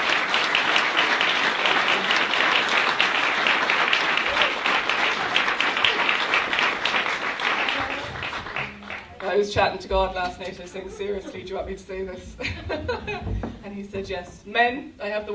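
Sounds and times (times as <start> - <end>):
audience applause: 0.0 - 9.5
laughter: 1.5 - 2.8, 10.2 - 13.6
speech: 9.4 - 15.3.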